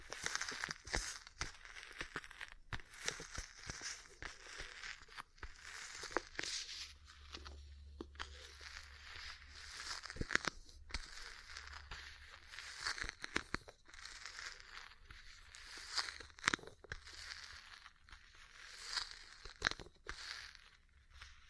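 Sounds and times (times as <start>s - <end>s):
cupping sounds: 0.0s - 21.4s
ear cleaning sounds: 0.0s - 21.4s.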